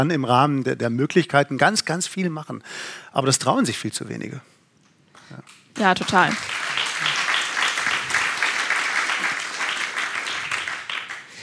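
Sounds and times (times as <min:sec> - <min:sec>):
speech: 0:00.0 - 0:04.6, 0:05.3 - 0:06.6
audience applause: 0:05.8 - 0:11.4.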